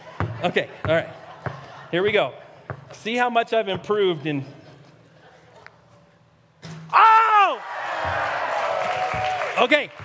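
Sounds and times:
speech: 0.4 - 1.2, 1.9 - 4.6, 9.6 - 10.0
audience clapping and cheering: 7.6 - 10.0.

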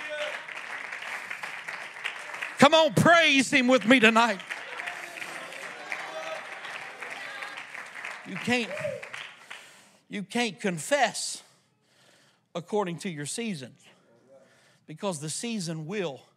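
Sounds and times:
audience clapping hands: 0.0 - 9.9
speech: 2.7 - 4.5, 8.3 - 9.1, 10.1 - 11.5, 12.5 - 14.0, 14.9 - 16.3.

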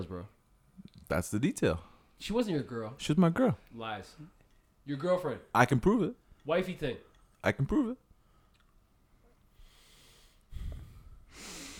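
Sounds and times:
speech: 0.0 - 8.0
deep breath: 9.2 - 11.7.

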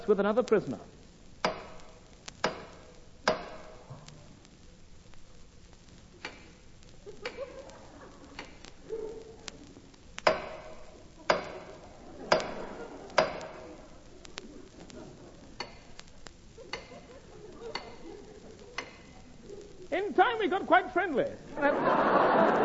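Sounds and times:
speech: 0.0 - 1.0, 21.1 - 21.7
tapping on the water pipe: 1.4 - 4.1, 10.2 - 13.6, 16.7 - 17.0
laughter: 7.0 - 9.9, 10.8 - 22.6.

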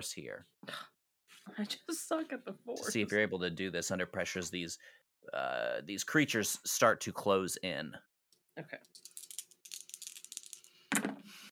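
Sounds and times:
speech: 0.0 - 9.1
dice rolling and rattling: 8.9 - 11.1.

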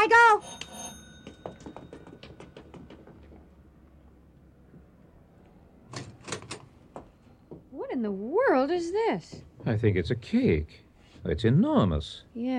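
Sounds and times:
doorbell ringing with metallic strokes: 0.2 - 3.0
speech: 8.0 - 12.5.

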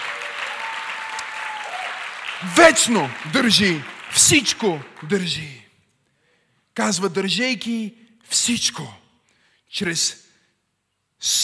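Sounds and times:
audience applause: 0.0 - 5.3
speech: 2.4 - 5.6, 6.8 - 9.0, 9.7 - 10.2, 11.2 - 11.4.

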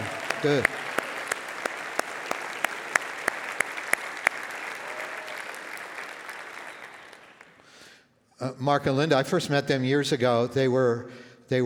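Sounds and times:
crowd applause: 0.0 - 7.7
sharp claps: 0.0 - 7.7
speech: 0.4 - 0.9, 8.5 - 11.6.

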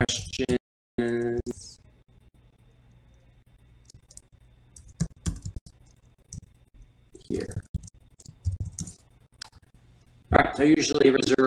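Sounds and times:
speech: 0.0 - 0.6, 10.6 - 11.4
typing on a computer keyboard: 3.8 - 6.6, 7.2 - 9.7.

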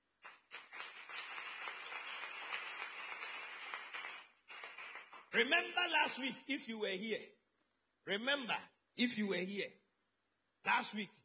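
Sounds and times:
audience clapping: 0.0 - 5.6
speech: 5.4 - 7.4, 8.0 - 9.8, 10.6 - 11.2.

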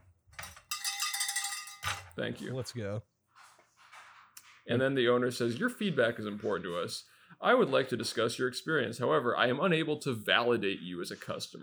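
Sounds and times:
clattering knocks: 0.3 - 2.2
small metallic bell ringing: 0.5 - 2.1
speech: 2.2 - 3.2, 4.7 - 11.6.

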